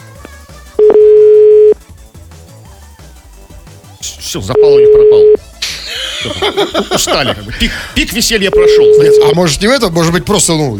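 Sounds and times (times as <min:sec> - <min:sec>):
telephone dial tone: 0:00.8 - 0:01.8, 0:04.8 - 0:05.4
speech: 0:04.3 - 0:05.4, 0:06.2 - 0:10.7
laughter: 0:05.6 - 0:07.8.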